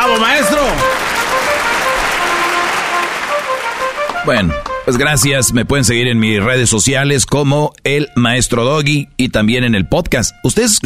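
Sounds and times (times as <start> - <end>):
applause: 0.0 - 4.9
speech: 4.2 - 10.8.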